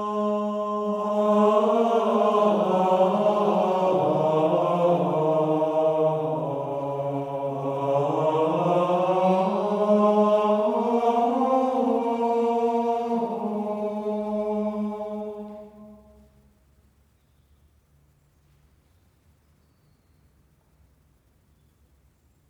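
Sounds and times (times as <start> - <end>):
two voices singing a chant: 0.0 - 16.3.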